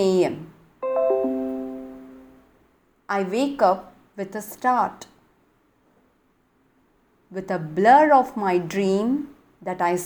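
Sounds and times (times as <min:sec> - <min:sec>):
speech: 0:00.0 - 0:00.5, 0:03.1 - 0:05.1, 0:07.3 - 0:10.0
clock chiming: 0:00.8 - 0:02.4.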